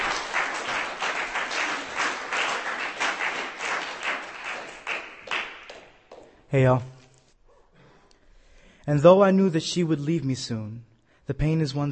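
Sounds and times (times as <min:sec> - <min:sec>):
audience applause at a poetry reading: 0:00.0 - 0:06.3
speech: 0:06.5 - 0:06.9, 0:08.8 - 0:11.9.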